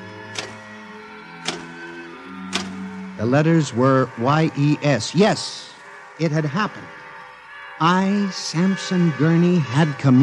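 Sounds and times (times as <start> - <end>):
electric typewriter typing: 0.3 - 0.6, 1.4 - 1.7, 2.5 - 2.8
speech: 3.2 - 7.0, 7.8 - 10.2.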